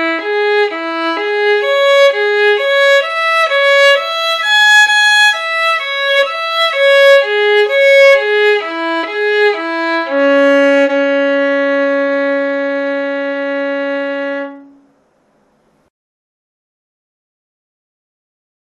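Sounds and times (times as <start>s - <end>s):
scale arpeggios in C-sharp minor: 0.0s - 14.9s.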